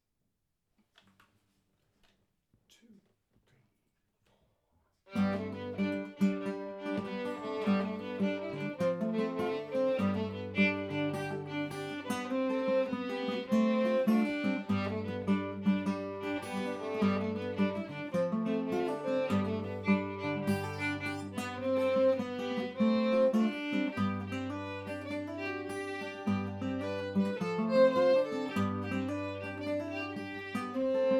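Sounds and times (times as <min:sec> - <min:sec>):
folk tune in G harmony: 0:05.2 - 0:31.1.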